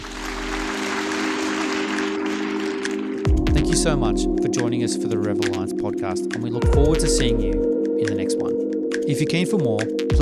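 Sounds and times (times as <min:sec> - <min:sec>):
round of applause from a crowd: 0:00.0 - 0:03.3
speech: 0:03.7 - 0:08.2, 0:09.1 - 0:10.2.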